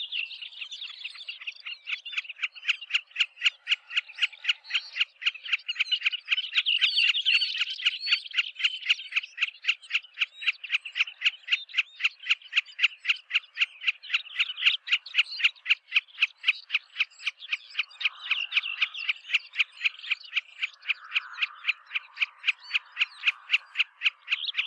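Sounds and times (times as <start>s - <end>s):
snipe calling: 0.0s - 24.6s.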